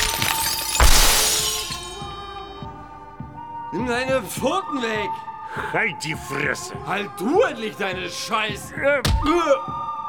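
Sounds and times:
glass shards tinkling: 0:00.0 - 0:02.2
glass shattering: 0:00.0 - 0:02.2
speech: 0:03.7 - 0:09.8.

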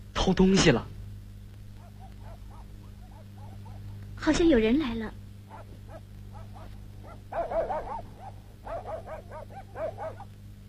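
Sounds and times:
speech: 0:00.2 - 0:01.0, 0:04.2 - 0:05.2
low hum: 0:00.9 - 0:10.6
dog barking in high yappy barks: 0:01.8 - 0:04.0, 0:05.5 - 0:10.3.

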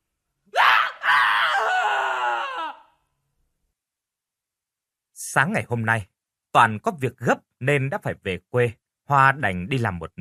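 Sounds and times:
terrified scream in a hotel: 0:00.5 - 0:03.0
speech: 0:05.3 - 0:10.1.

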